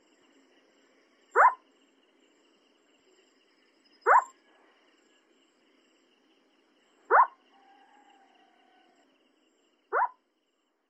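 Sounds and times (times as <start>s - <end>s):
Collared scops owl giving short soft downward-inflected hoots: 1.4s - 1.6s, 4.1s - 4.3s, 7.1s - 7.4s, 9.9s - 10.2s.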